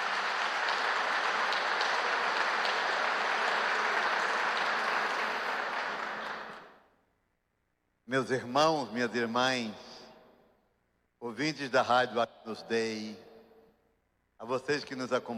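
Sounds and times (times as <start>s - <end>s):
audience applause: 0.0s - 6.7s
speech: 8.1s - 9.9s, 11.4s - 13.3s, 14.4s - 15.3s.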